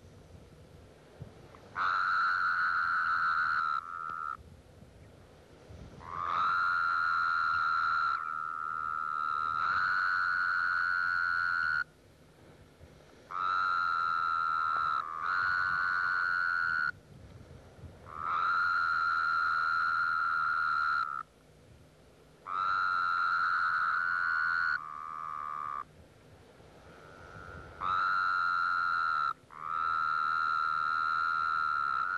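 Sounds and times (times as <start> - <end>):
Wyoming toad calling: 1.5 - 4.4, 6.0 - 12.0, 13.3 - 17.0, 18.0 - 21.3, 22.4 - 25.9, 26.8 - 32.1.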